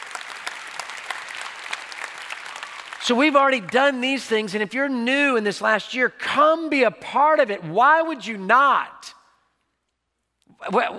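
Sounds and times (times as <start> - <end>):
audience cheering and applause: 0.0 - 3.1
speech: 3.0 - 9.0, 10.6 - 10.9.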